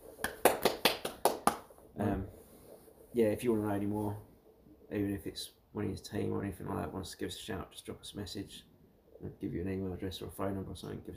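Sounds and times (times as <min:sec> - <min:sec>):
hands clapping in a round of applause for a colleague: 0:00.2 - 0:01.8
speech: 0:03.1 - 0:04.3, 0:04.9 - 0:11.1.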